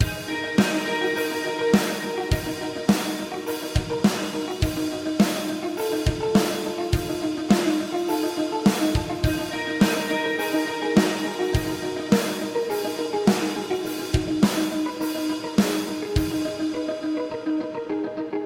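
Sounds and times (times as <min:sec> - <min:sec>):
looped guitar melodies: 0:00.0 - 0:18.4.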